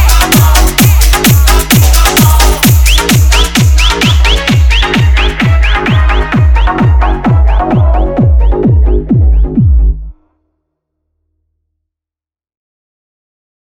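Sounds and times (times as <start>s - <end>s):
siren bass remix: 0.0s - 10.2s.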